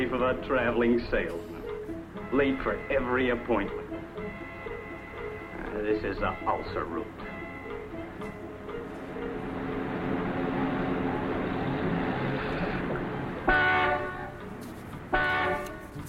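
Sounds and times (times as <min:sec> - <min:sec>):
speech: 0:00.0 - 0:01.6, 0:02.2 - 0:03.8, 0:05.8 - 0:07.3
idling traffic roar: 0:00.0 - 0:16.0
car horns honking in traffic jam: 0:01.4 - 0:08.5, 0:10.4 - 0:15.9.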